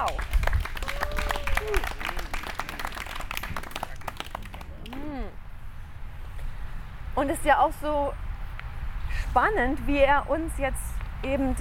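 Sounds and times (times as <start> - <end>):
audience applause: 0.0 - 5.0
speech: 7.2 - 8.2, 9.3 - 11.5.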